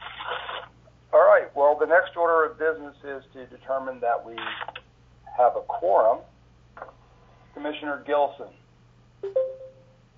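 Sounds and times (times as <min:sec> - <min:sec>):
speech: 0:01.8 - 0:04.8, 0:05.4 - 0:06.3, 0:07.6 - 0:08.6
conference call tones as someone joins by phone: 0:09.2 - 0:10.0.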